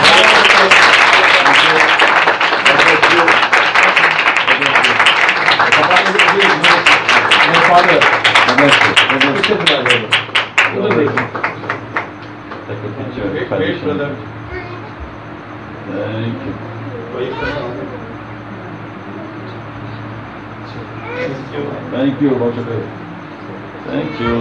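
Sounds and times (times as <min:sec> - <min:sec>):
large audience applause: 0:00.0 - 0:12.7
voices: 0:00.0 - 0:24.3.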